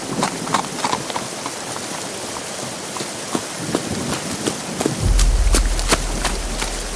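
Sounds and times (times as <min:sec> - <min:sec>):
tired horses' hooves clip-clopping: 0:00.0 - 0:05.3
heavy downpour: 0:03.5 - 0:06.9
deep rumble: 0:05.0 - 0:06.9.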